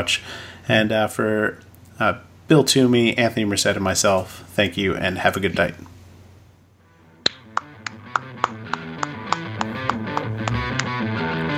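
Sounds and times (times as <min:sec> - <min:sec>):
speech: 0:00.0 - 0:05.9
fast hand clapping: 0:07.3 - 0:11.5
sustained tonal musical background: 0:07.3 - 0:11.5.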